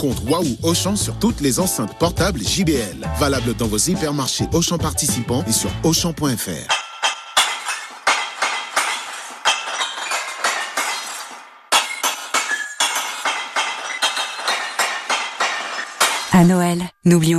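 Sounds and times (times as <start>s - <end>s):
speech: 0.0s - 6.8s, 16.4s - 17.3s
glass bottles and jars clinking: 6.7s - 16.4s.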